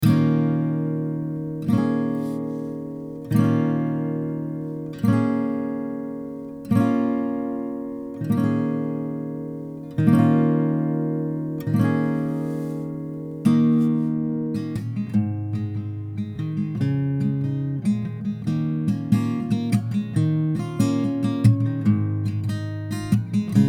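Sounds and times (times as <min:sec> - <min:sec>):
guitar sample in D minor: 0:00.0 - 0:23.6.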